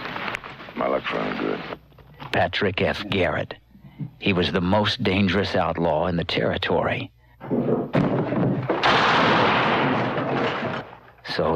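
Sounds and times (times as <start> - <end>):
speech: 1.0 - 3.6, 4.2 - 7.2, 11.3 - 11.5
gunshots from a western film: 8.0 - 11.0.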